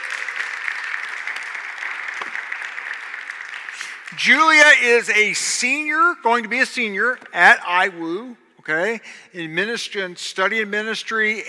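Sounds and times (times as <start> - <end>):
audience applause for a summer intern: 0.0 - 4.7
speech: 4.1 - 11.4.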